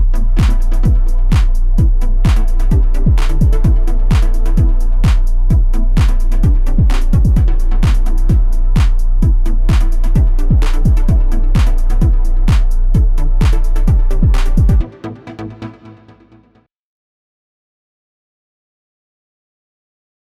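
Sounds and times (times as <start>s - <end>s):
synthesizer 808 bass drum: 0.0s - 14.9s.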